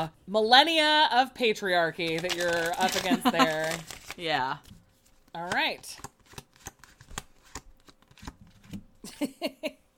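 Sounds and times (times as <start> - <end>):
speech: 0.0 - 6.1, 9.2 - 9.6
tarot cards being shuffled and drawn: 2.0 - 8.9.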